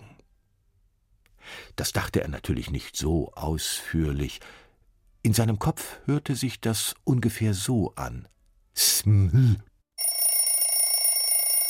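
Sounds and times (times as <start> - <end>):
speech: 1.7 - 4.6, 5.2 - 9.7
alarm clock ringing: 10.0 - 11.6.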